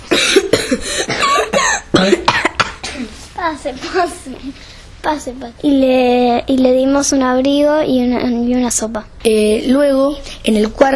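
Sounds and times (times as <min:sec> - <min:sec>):
voice acting out an old man coughing: 0:00.0 - 0:03.2
speech: 0:03.6 - 0:10.9.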